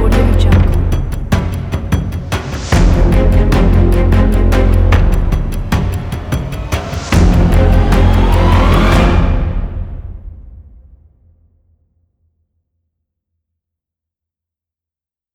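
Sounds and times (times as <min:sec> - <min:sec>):
epic orchestral cinematic tension music: 0:00.0 - 0:10.8.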